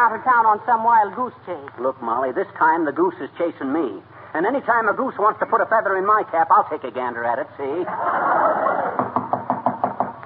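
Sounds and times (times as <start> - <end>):
speech: 0.0 - 9.0
laughter: 7.8 - 9.2
knock on a door: 9.0 - 10.2.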